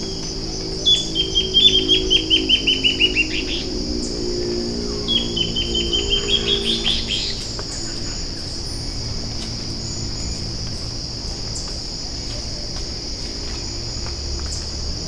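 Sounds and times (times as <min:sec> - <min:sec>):
bird chirping: 0:00.0 - 0:09.0
steady high hiss: 0:00.0 - 0:15.0.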